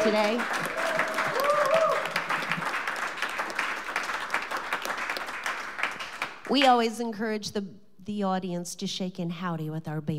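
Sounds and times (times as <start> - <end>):
speech: 0.0 - 0.8, 6.5 - 10.1
audience applause: 0.0 - 6.5.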